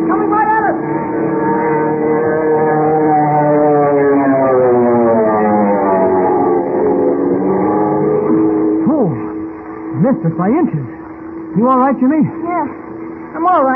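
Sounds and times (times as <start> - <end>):
wind screaming through the strut: 0.0 - 9.9
silver monoplane motor roaring in a power dive: 0.0 - 13.7
speech: 10.2 - 10.9, 11.6 - 12.4.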